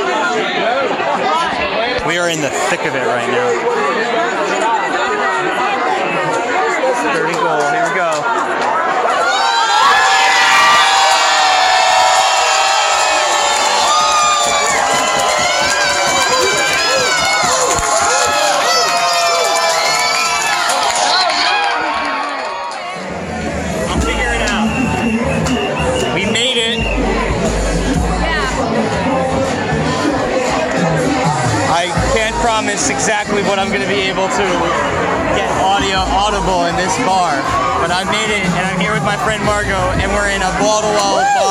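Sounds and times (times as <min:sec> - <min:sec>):
crowd chatter in a New Orleans bar: 0:00.0 - 0:41.4
speech: 0:02.1 - 0:04.8, 0:06.9 - 0:08.6, 0:32.8 - 0:41.4
Saints fans screaming and whooping in a packed New Orleans bar: 0:08.3 - 0:32.5, 0:34.0 - 0:41.4.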